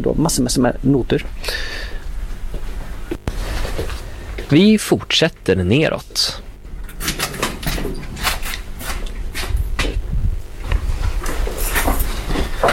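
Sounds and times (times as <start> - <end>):
speech: 0.0 - 1.9, 4.5 - 6.5
low rumbling background: 0.0 - 12.6
metallic clanks and rattles: 6.7 - 9.1
heavy door being shut: 6.7 - 10.0.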